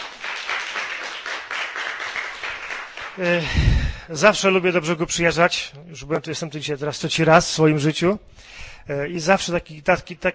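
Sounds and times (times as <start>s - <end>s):
crowd applauding to welcome guests: 0.0s - 3.8s
speech: 3.2s - 10.3s.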